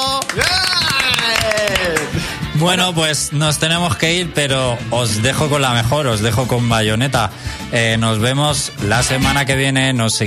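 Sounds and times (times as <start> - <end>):
applause: 0.0 - 2.4
speech: 2.6 - 10.2.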